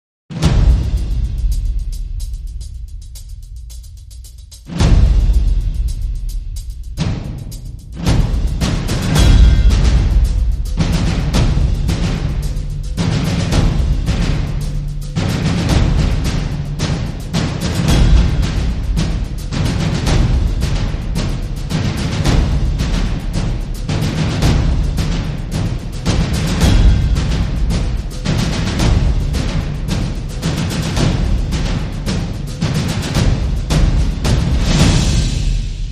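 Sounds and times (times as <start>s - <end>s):
drums: 0.3s - 35.9s.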